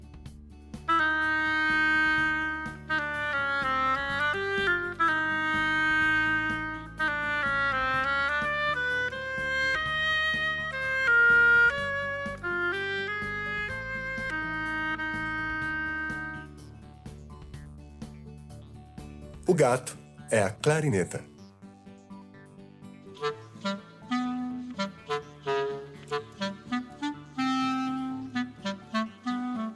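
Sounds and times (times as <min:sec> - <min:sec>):
oboe playing a melody: 0:00.9 - 0:16.7, 0:23.2 - 0:29.7
speech: 0:19.5 - 0:21.3.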